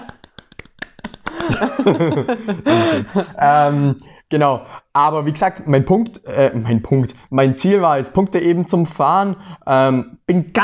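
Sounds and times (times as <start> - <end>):
hands clapping: 0.0 - 2.2
laughter: 1.2 - 3.8
speech: 1.5 - 10.6.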